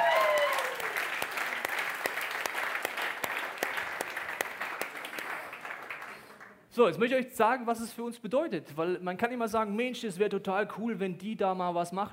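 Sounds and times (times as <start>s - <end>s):
audience clapping: 0.0s - 6.7s
speech: 6.8s - 12.1s.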